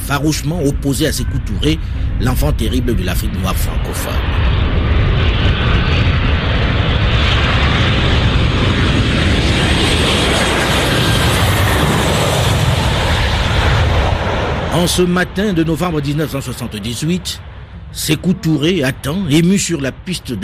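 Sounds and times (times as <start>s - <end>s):
airplane engine roar landing at Conakry airport: 0.0s - 20.4s
speech: 0.1s - 4.8s, 14.8s - 20.4s.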